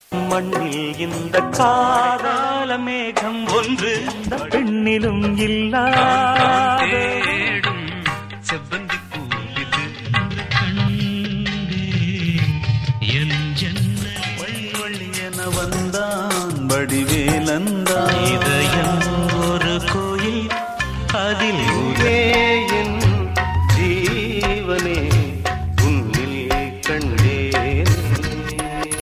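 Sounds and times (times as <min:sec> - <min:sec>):
Tamil evergreen song: 0:00.0 - 0:29.0.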